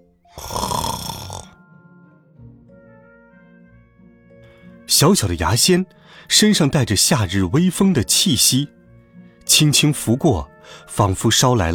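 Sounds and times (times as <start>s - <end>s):
snoring: 0.4s - 1.6s
speech: 4.9s - 8.8s, 9.5s - 11.7s.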